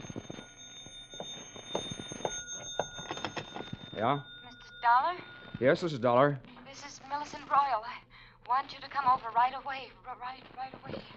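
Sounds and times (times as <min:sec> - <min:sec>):
telephone ringing: 0:00.0 - 0:06.1
speech: 0:04.0 - 0:11.1.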